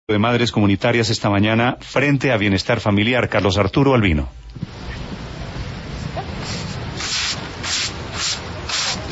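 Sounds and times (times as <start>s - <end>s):
speech: 0.1s - 4.7s
broom sweeping out floodwater: 6.3s - 9.0s.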